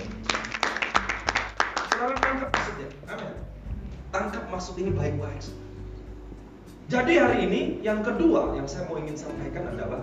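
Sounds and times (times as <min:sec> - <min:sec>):
audience clapping: 0:00.0 - 0:03.0
speech: 0:02.0 - 0:05.6, 0:06.9 - 0:10.0.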